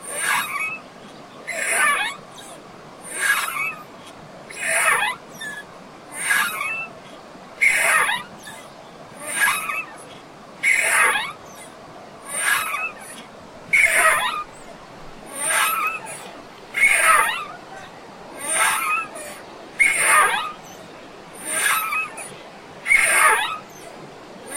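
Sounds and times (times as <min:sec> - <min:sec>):
swing at a river beach: 0:00.0 - 0:00.8, 0:01.4 - 0:02.2, 0:03.1 - 0:03.8, 0:04.5 - 0:06.9, 0:09.2 - 0:23.9.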